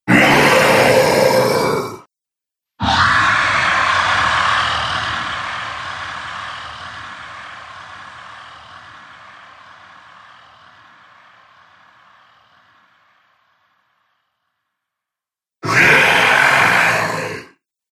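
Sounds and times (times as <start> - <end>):
dragon monster sounds: 0.0 - 2.1, 2.8 - 7.8, 15.6 - 17.6.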